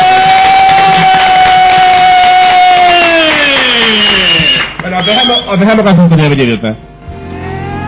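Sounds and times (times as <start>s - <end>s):
applause: 0.0s - 5.4s
sliding whistling tone: 3.2s - 5.6s
speech: 5.1s - 6.9s.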